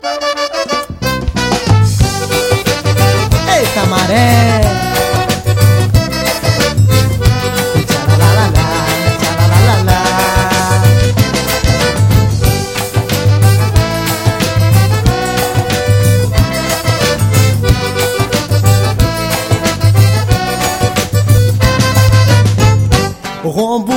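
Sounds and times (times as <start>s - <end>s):
forró music: 0.0s - 23.9s.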